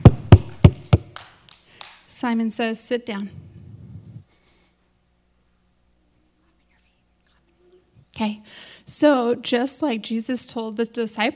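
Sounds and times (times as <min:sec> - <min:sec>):
hand claps: 0:00.0 - 0:02.1
speech: 0:02.2 - 0:03.4, 0:08.2 - 0:11.3.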